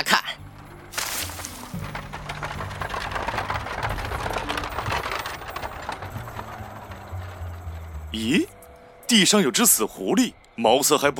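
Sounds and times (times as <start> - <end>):
horse-drawn cart wheels rumbling: 0.4 - 10.4
horse hooves clip-clopping pulling a cart: 1.1 - 8.6
speech: 8.2 - 8.5, 9.1 - 11.1.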